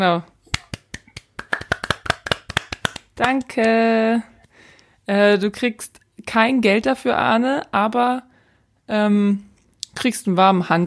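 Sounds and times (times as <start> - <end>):
speech: 0.0 - 0.3, 3.2 - 4.3, 5.1 - 8.3, 8.9 - 10.8
applause: 0.6 - 3.8.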